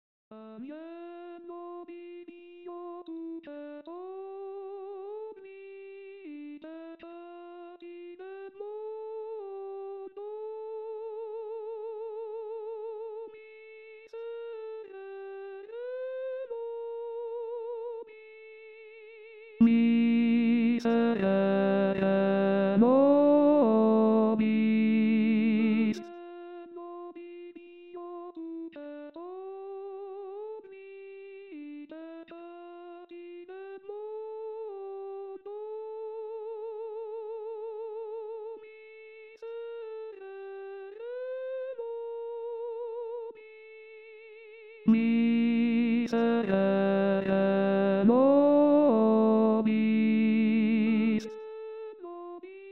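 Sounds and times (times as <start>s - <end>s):
contraltos singing: 19.6s - 26.1s, 44.9s - 51.4s.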